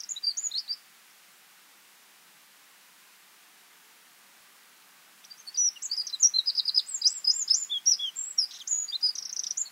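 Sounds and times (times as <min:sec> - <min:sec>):
Eurasian wren Troglodytes troglodytes singing: 0:00.0 - 0:00.8, 0:05.2 - 0:09.7.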